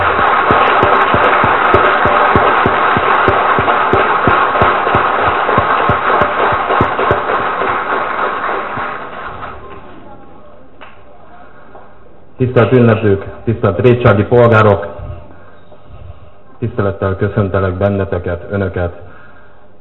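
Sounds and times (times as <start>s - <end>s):
audience applause: 0.0s - 9.6s
speech: 12.4s - 15.0s, 16.7s - 19.1s.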